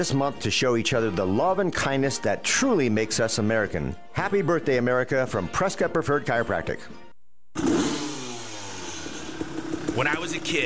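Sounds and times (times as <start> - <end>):
speech: 0.0 - 7.0, 10.0 - 10.6
250cc Kawasaki dirt bike engine revving: 7.6 - 10.6.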